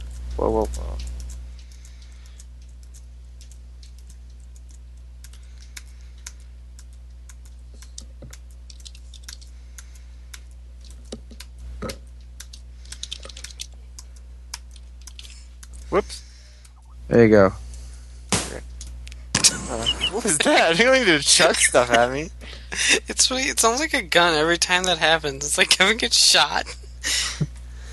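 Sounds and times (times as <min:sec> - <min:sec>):
low steady hum: 0:00.0 - 0:27.9
rapid typing on a computer keyboard: 0:00.1 - 0:11.5, 0:12.2 - 0:15.8
speech: 0:00.4 - 0:01.1, 0:17.1 - 0:17.6, 0:20.4 - 0:27.2
laughter: 0:19.4 - 0:23.2, 0:26.6 - 0:27.5.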